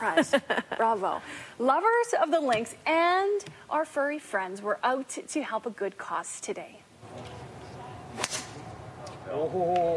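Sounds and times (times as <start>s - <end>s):
speech: 0.0s - 7.4s, 9.3s - 9.9s
golf club swing at a charity golf tournament: 8.1s - 8.6s.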